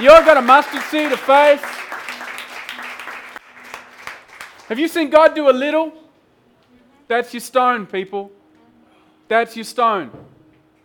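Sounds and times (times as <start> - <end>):
speech: 0.0 - 1.8, 4.7 - 6.0, 7.1 - 8.4, 9.3 - 10.2
audience clapping: 0.0 - 5.0.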